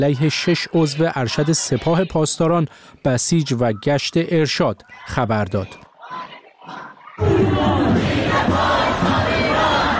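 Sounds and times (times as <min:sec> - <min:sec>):
protest march crowd chanting slogans: 0:00.0 - 0:02.6, 0:04.8 - 0:09.9
quieter crowd murmuring: 0:00.0 - 0:04.0, 0:04.8 - 0:09.9
speech: 0:00.0 - 0:09.9.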